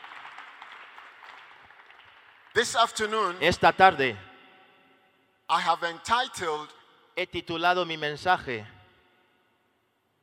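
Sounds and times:
audience applause: 0.0 - 2.6
speech: 2.6 - 4.2, 5.5 - 8.7.

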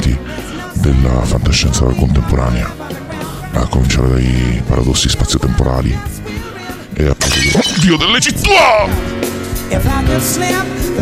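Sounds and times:
speech: 0.8 - 3.0, 3.6 - 10.9
wine glass falling and shattering: 7.2 - 8.7.

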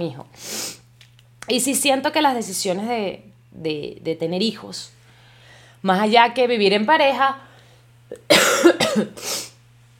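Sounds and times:
speech: 0.0 - 0.6, 1.5 - 5.0, 5.8 - 7.5, 8.1 - 9.4
low steady hum: 0.0 - 9.9
person coughing in a coughing fit: 8.1 - 9.5.

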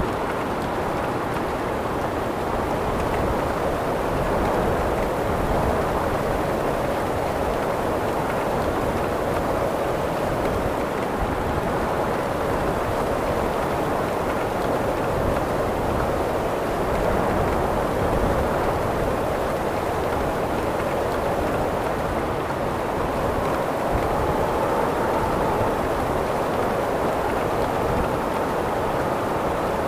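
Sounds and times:
rain: 0.0 - 29.8
wind: 0.0 - 29.8.

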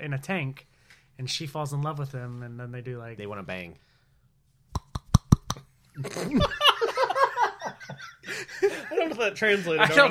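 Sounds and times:
speech: 0.0 - 3.9, 6.0 - 6.6, 8.3 - 10.1
quick sharp hand slaps: 4.8 - 5.6
laughter: 6.0 - 10.1.

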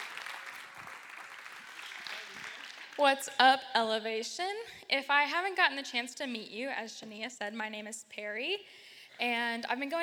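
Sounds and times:
audience applause welcoming a speaker: 0.0 - 3.0
speech: 3.0 - 10.0.

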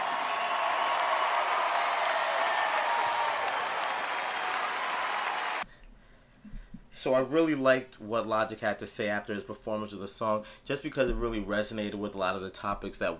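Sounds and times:
concert audience applause: 0.0 - 5.6
speech: 7.0 - 13.1.

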